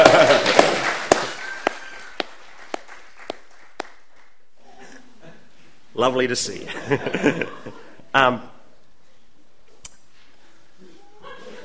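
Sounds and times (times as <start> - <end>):
laughter: 0.0 - 0.8, 6.6 - 8.0, 11.0 - 11.6
round of applause: 0.0 - 4.4
speech: 6.0 - 8.5.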